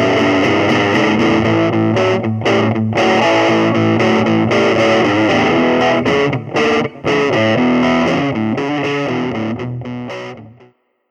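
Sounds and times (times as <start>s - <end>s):
electric guitar playing blues: 0.0s - 10.8s.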